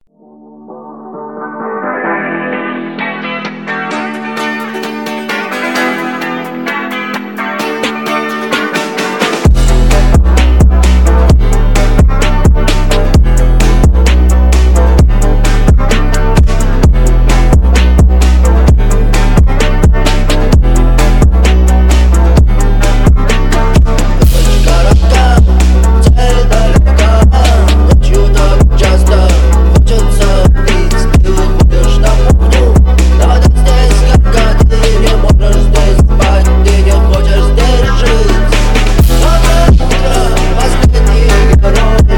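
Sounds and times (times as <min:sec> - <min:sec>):
phonk remix: 0:00.4 - 0:42.1.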